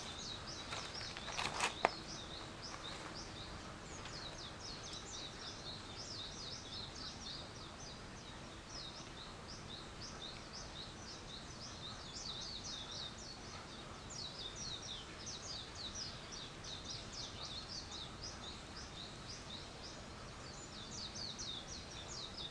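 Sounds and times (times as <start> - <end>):
rustling: 0.0 - 3.3
bird chirping: 0.0 - 22.4
hissing background: 0.0 - 22.4.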